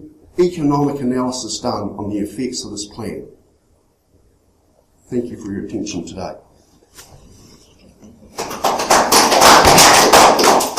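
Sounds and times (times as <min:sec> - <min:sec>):
speech: 0:00.4 - 0:03.4, 0:05.1 - 0:07.2
audience clapping: 0:08.3 - 0:10.7.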